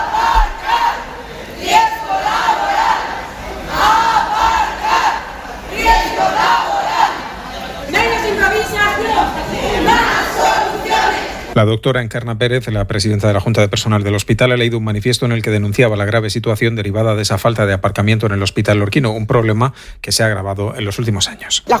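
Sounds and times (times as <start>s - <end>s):
protesters chanting slogans: 0.0s - 11.6s
speech: 11.6s - 21.7s.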